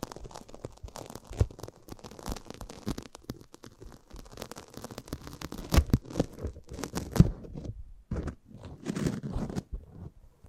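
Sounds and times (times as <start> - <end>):
microphone handling: 5.5 - 10.4.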